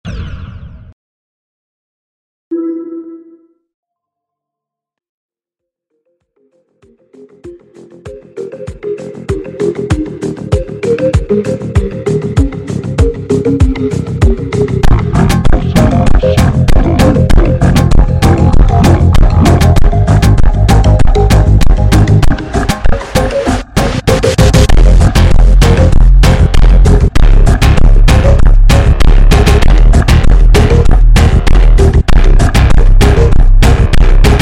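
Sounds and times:
slowed funk music: 9.1s - 34.4s.

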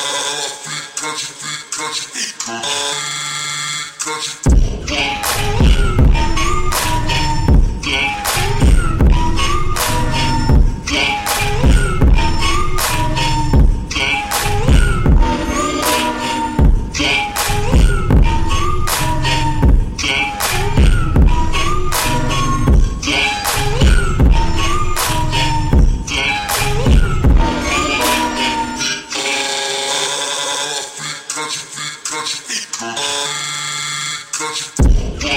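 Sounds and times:
slowed reverb montagem music: 4.5s - 29.3s.

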